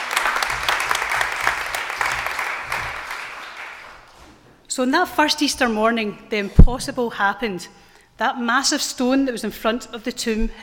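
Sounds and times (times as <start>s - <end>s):
applause: 0.0s - 4.2s
speech: 4.8s - 10.6s.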